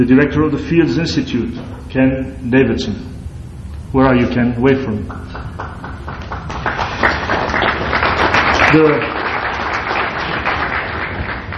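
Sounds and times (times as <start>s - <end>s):
speech: 0.0s - 3.2s, 3.9s - 5.9s, 8.7s - 9.2s
audience applause: 5.1s - 11.5s.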